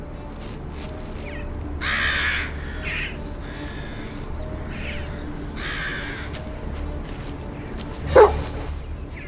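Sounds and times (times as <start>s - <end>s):
crows cawing: 0.3s - 8.4s
dog barking: 8.0s - 8.6s.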